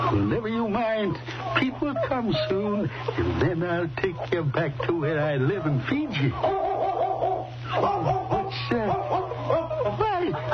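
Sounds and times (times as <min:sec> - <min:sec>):
speech: 0:00.2 - 0:09.2
laughter: 0:01.2 - 0:10.5
mother dog barking: 0:06.4 - 0:09.6.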